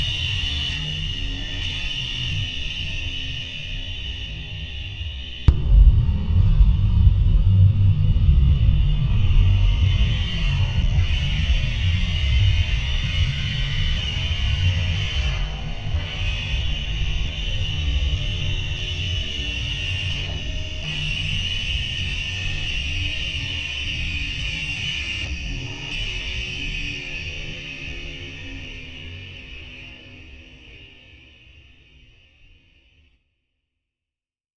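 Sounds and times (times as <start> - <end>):
slow spooky drone bed: 0.0 - 25.3
kick drum: 5.5 - 9.4.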